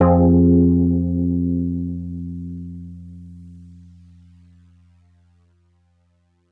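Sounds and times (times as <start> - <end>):
synth stabs: 0.0 - 2.9.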